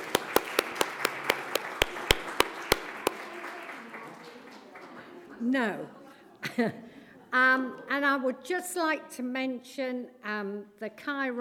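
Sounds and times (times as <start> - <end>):
audience clapping: 0.0 - 5.3
laughter: 0.0 - 7.4
speech: 5.4 - 11.4.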